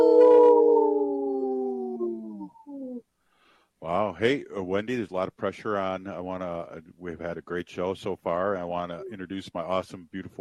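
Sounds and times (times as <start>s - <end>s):
wolf howling: 0.0s - 2.7s
speech: 4.1s - 10.3s.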